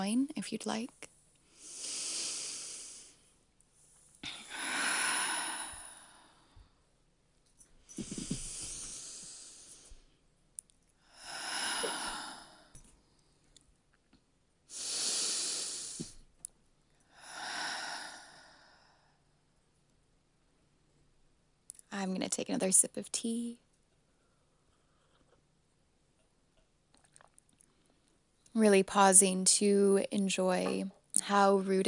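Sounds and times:
speech: 0.0 - 1.1, 22.4 - 23.7, 28.6 - 31.8
slow deep belly breaths: 1.4 - 3.4, 4.2 - 6.9, 7.8 - 10.2, 11.0 - 13.4, 14.7 - 16.3, 17.0 - 19.3.

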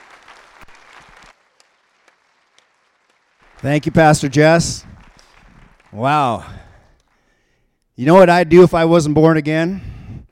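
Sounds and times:
church congregation applauding to welcome a pastor: 0.0 - 7.4
speech: 3.6 - 4.9, 6.0 - 6.6, 8.0 - 9.9.

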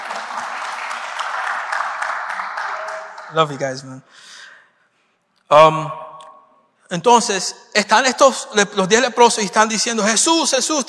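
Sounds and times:
audience applause: 0.0 - 3.9
speech: 3.3 - 4.3, 5.5 - 6.0, 6.9 - 10.8.

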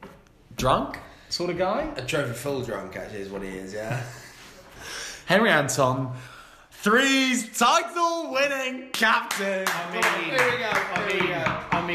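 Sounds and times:
speech: 0.6 - 4.2, 4.8 - 11.9
applause: 9.3 - 11.1.

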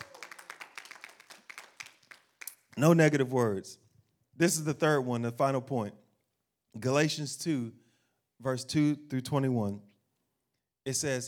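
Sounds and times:
audience clapping hands: 0.0 - 3.0
speech: 2.8 - 3.8, 4.4 - 6.0, 6.7 - 7.8, 8.4 - 9.9, 10.8 - 11.2.

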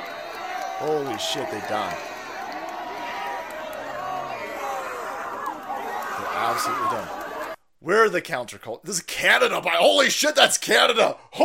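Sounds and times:
crowd cheering: 0.0 - 7.6
speech: 0.8 - 2.1, 6.4 - 7.2, 7.8 - 11.4.

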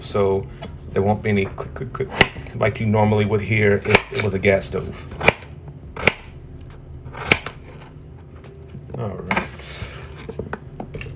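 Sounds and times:
speech: 0.1 - 5.3
knife chopping potatoes into cubes on cutting board: 2.1 - 2.5, 3.8 - 4.3, 5.1 - 6.3, 7.1 - 7.8.

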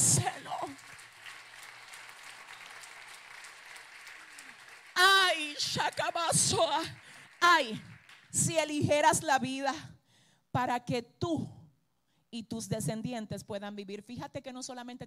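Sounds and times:
crowd applause: 0.0 - 8.4
speech: 5.6 - 9.9, 10.6 - 11.6, 12.3 - 15.0.

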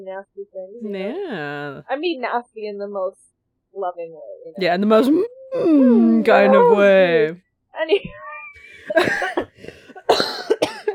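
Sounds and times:
speech: 0.0 - 8.2, 8.9 - 10.6
person coughing from cinnamon of apple crumble stuck in throat: 8.8 - 10.9.

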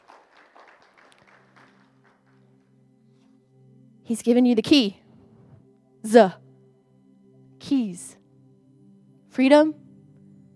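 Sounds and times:
audience clapping in praise: 0.0 - 2.7
speech: 4.1 - 5.0, 6.0 - 6.4, 9.4 - 9.8.

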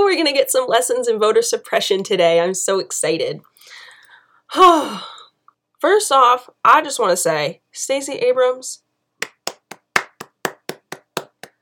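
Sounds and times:
speech: 0.1 - 3.8, 4.5 - 5.2, 5.8 - 8.8
person clapping: 9.2 - 11.6.

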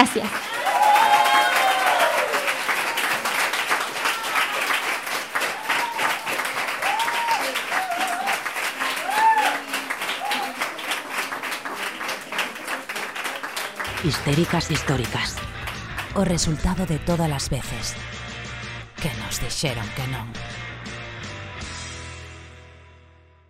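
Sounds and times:
audience applause: 0.0 - 17.4
speech: 0.2 - 0.6, 14.1 - 15.5, 16.2 - 18.2, 19.0 - 20.6.

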